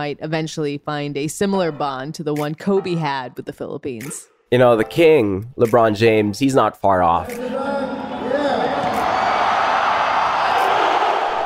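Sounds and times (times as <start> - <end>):
speech: 0.0 - 8.0
packed arena crowd at Mall of Asia Arena cheering a LeBron James dunk: 7.3 - 11.4.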